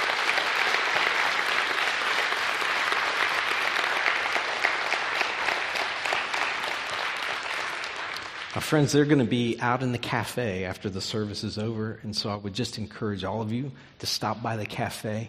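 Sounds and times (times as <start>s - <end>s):
warm applause welcoming new members at a service: 0.0s - 9.0s
speech: 8.6s - 15.2s.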